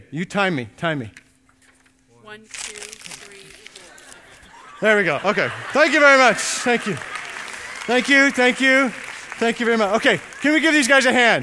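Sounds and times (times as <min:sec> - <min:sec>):
speech: 0:00.1 - 0:01.2, 0:02.3 - 0:02.8, 0:04.8 - 0:07.1, 0:07.9 - 0:11.4
piece of paper being folded: 0:01.6 - 0:04.5
laughter: 0:03.2 - 0:11.4.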